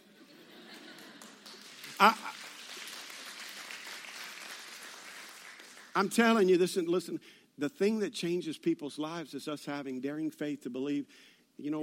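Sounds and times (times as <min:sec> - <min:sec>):
laughter: 0:00.0 - 0:02.4
two people clapping: 0:00.6 - 0:06.5
speech: 0:02.0 - 0:02.3, 0:06.0 - 0:11.8.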